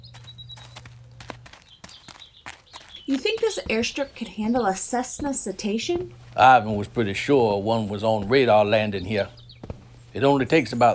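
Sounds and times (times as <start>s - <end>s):
footsteps walking along a remote airstrip runway edged by marsh grasses: 0.0s - 10.8s
speech: 3.1s - 9.4s, 10.1s - 10.9s.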